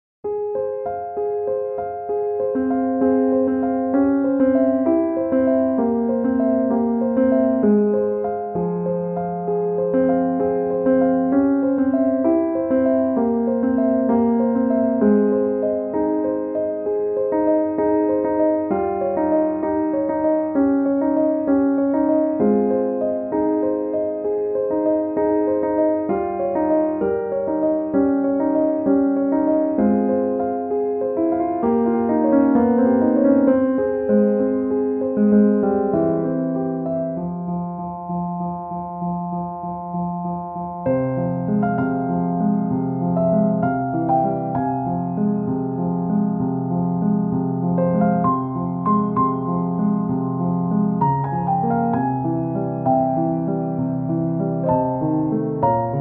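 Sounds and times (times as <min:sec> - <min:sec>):
soft pianos: 0:00.2 - 0:55.9.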